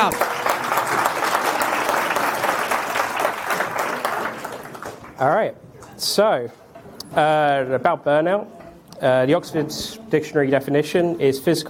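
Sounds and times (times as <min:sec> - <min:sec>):
crowd applause: 0:00.0 - 0:05.2
speech: 0:05.2 - 0:11.6.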